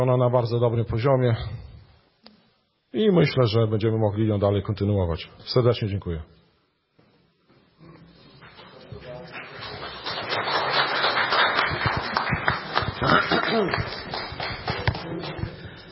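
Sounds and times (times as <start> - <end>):
speech: 0.0 - 1.7, 2.9 - 6.4, 13.5 - 14.0
audience applause: 9.1 - 15.6.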